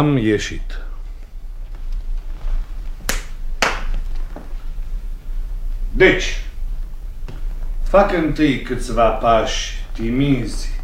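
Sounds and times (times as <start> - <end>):
speech: 0.0 - 0.9, 6.0 - 6.5, 7.9 - 10.8
quiet hiss: 0.0 - 10.8
sharp crisp hand claps: 3.1 - 4.0.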